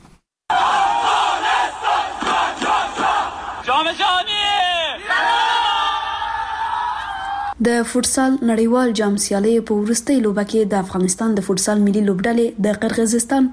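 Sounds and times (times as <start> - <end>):
crowd cheering and chanting to welcome Afghanistan's national futsal team: 0.5 - 7.6
rising and falling cries: 0.5 - 7.6
speech: 7.6 - 13.5.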